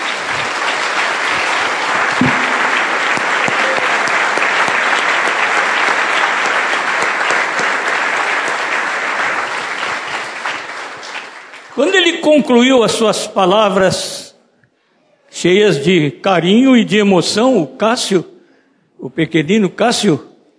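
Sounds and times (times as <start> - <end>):
audience applause: 0.0 - 11.8
speech: 12.2 - 14.2, 15.4 - 18.3, 19.0 - 20.3.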